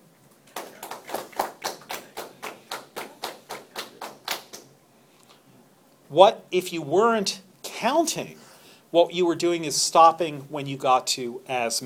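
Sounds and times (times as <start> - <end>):
hand claps beaten out for counting: 0.3 - 4.8
speech: 6.1 - 11.8.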